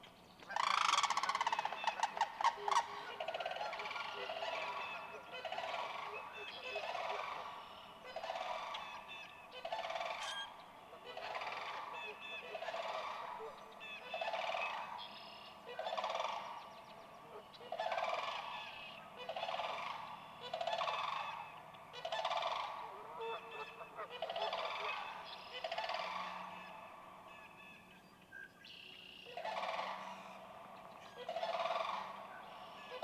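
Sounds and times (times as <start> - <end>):
sandhill crane calling: 0.0 - 33.0.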